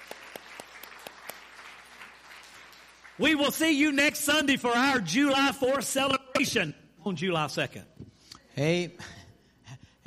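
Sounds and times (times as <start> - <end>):
audience clapping: 0.0 - 4.0
speech: 3.2 - 7.9, 8.6 - 9.2.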